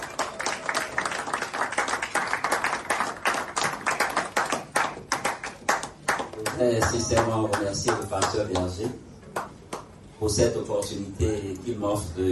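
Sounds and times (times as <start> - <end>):
audience applause: 0.0 - 8.4
speech: 6.6 - 9.1, 10.2 - 12.3.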